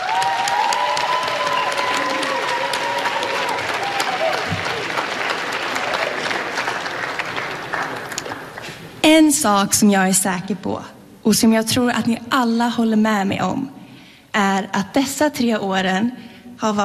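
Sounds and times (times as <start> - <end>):
applause: 0.0 - 8.8
speech: 9.2 - 13.8, 14.4 - 16.8.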